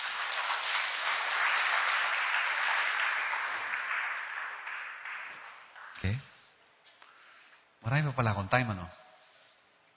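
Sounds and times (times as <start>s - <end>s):
church congregation applauding in praise: 0.0s - 6.6s
speech: 6.0s - 6.3s, 7.8s - 9.0s.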